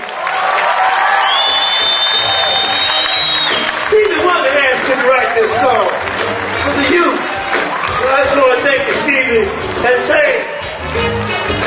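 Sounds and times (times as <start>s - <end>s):
loud crowd applause and cheering: 0.0s - 11.6s
high whistle-like tone: 1.2s - 3.7s.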